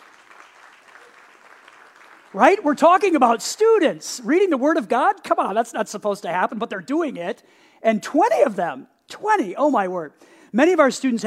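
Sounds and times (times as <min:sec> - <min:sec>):
audience applause: 0:00.0 - 0:02.6
speech: 0:02.3 - 0:11.2.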